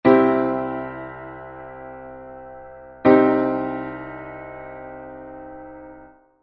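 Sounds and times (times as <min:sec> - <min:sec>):
major and minor chords compared: 0:00.0 - 0:06.3.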